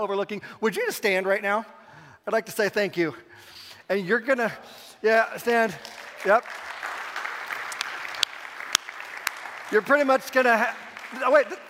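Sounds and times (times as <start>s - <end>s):
speech: 0.0s - 6.7s, 9.7s - 11.6s
church congregation applauding its volunteers: 5.4s - 11.6s
sharp loud claps: 5.5s - 11.6s.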